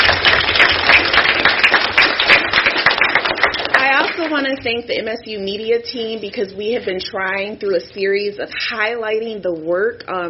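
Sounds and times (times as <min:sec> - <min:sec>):
audience applause: 0:00.0 - 0:04.3
speech: 0:04.4 - 0:10.2.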